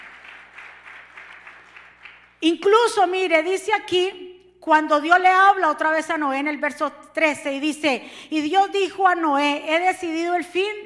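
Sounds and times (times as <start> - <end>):
audience applause: 0.0 - 2.3
speech: 2.4 - 10.8.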